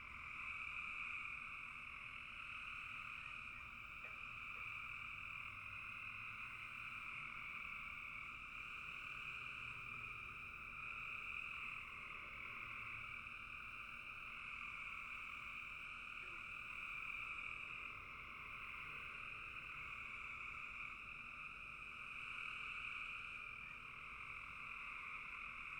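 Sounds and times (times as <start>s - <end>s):
post-dusk frogs croaking in a bog: 0.0s - 25.7s.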